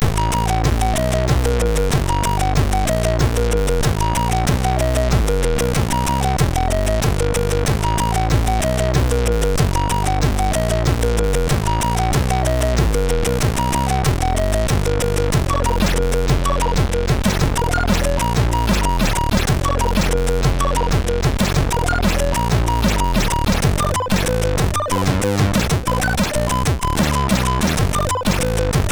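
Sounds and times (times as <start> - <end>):
SID MOS6581R3 chip sound: 0.0 - 28.9.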